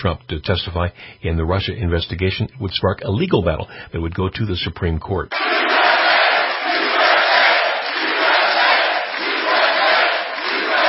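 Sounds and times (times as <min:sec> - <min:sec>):
speech: 0:00.0 - 0:05.8
enthusiastic rally crowd cheering: 0:05.3 - 0:10.8.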